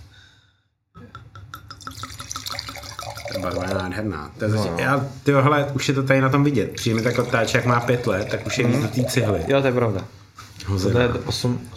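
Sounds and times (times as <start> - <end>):
wine pouring into a glass: 1.6 - 4.0, 6.6 - 10.1
speech: 3.4 - 11.7.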